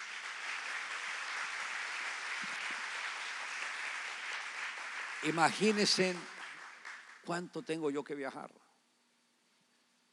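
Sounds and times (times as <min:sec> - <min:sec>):
audience applauding: 0:00.0 - 0:07.4
speech: 0:05.2 - 0:06.3, 0:07.2 - 0:08.6.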